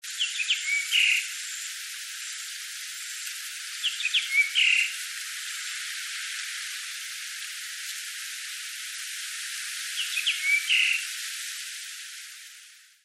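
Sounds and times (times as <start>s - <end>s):
high hiss: 0.0s - 13.0s
Japanese grosbeak whistled notes: 0.2s - 1.2s, 3.8s - 4.9s, 10.0s - 11.0s.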